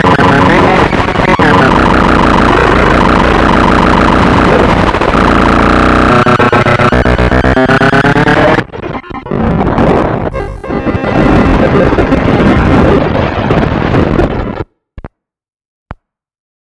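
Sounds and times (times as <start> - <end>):
circuit-bent Casio SK1: 0.0 - 14.7.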